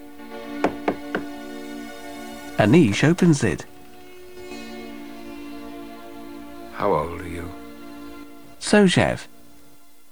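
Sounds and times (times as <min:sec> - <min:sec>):
knock on an unlit door: 0:00.6 - 0:01.4
speech: 0:02.6 - 0:03.7, 0:06.8 - 0:07.6, 0:08.7 - 0:09.3.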